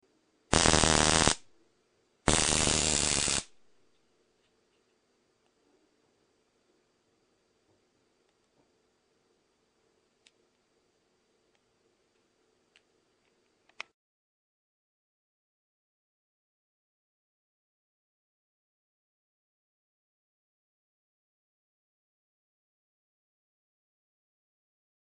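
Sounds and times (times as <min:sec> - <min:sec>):
long stun gun discharge: 0:00.6 - 0:01.4, 0:02.3 - 0:03.6.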